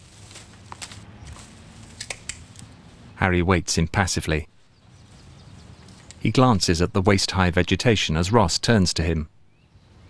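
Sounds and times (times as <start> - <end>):
light footsteps stepping down onto a garden path: 0.0 - 3.0
speech: 3.2 - 4.5, 6.2 - 9.4.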